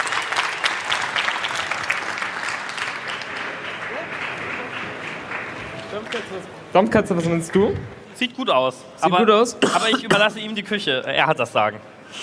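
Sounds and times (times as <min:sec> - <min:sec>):
applause: 0:00.0 - 0:06.5
speech: 0:06.0 - 0:12.2.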